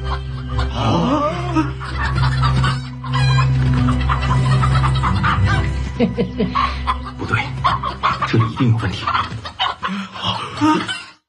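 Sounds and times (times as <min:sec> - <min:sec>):
chickens clucking and squawking: 0:00.0 - 0:11.2
laughter: 0:00.0 - 0:11.2
speech: 0:01.6 - 0:02.0, 0:06.0 - 0:09.4, 0:10.6 - 0:11.0
roosters fighting in a cockfight: 0:01.8 - 0:05.9, 0:07.3 - 0:11.0.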